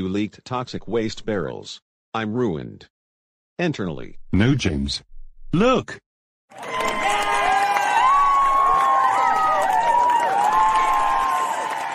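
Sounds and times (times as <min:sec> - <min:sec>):
speech: 0:00.0 - 0:03.0, 0:03.6 - 0:06.7
crowd cheering: 0:06.5 - 0:11.9
scattered clapping: 0:06.6 - 0:11.9.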